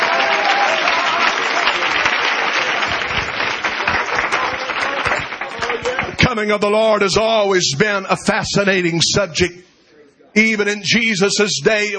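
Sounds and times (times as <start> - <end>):
audience clapping hands: 0.0 - 6.7
speech: 6.4 - 9.7, 10.3 - 11.9.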